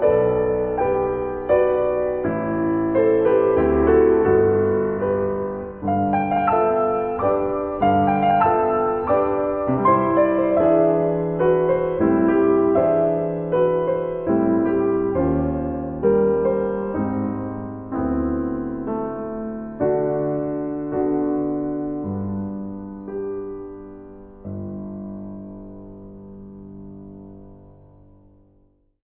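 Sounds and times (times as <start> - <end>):
minuet music: 0.0 - 22.0.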